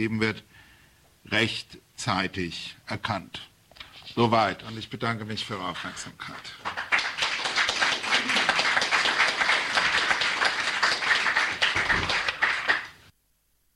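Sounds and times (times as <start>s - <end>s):
speech: 0.0s - 3.5s, 4.2s - 6.8s
audience applause after a speech: 6.6s - 13.1s.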